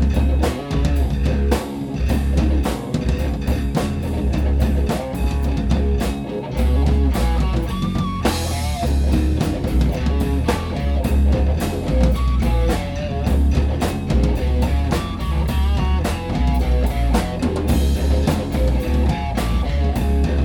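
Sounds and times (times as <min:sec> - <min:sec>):
sliced riff: 0:00.0 - 0:20.4.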